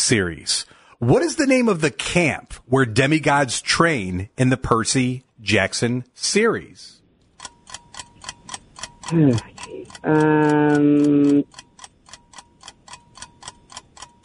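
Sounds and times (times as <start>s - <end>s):
speech: 0.0s - 7.0s, 9.1s - 11.6s
quiz timer ticking: 7.2s - 14.2s.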